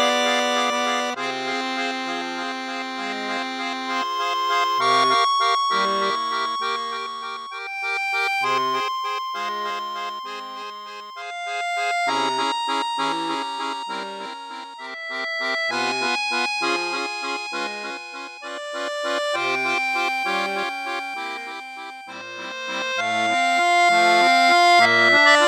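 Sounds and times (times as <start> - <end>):
accordion on register 8: 0.0 - 25.4.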